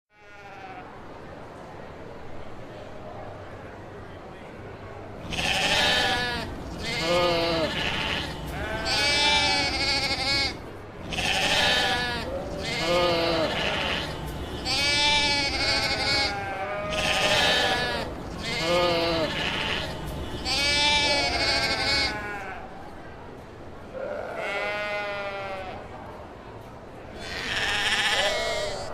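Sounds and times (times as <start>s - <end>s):
sheep bleating: 0.2s - 0.8s, 5.2s - 22.6s, 24.0s - 25.8s, 27.2s - 28.9s.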